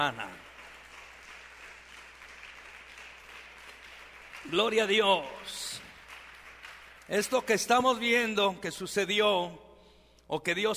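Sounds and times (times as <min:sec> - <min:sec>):
speech: 0:00.0 - 0:00.3, 0:04.4 - 0:05.7, 0:07.1 - 0:09.6, 0:10.3 - 0:10.7
audience applause: 0:00.0 - 0:07.8.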